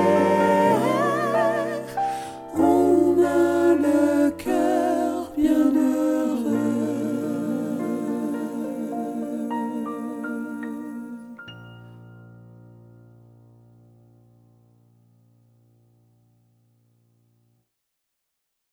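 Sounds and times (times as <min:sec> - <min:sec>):
gospel music tutti: 0:00.0 - 0:13.4.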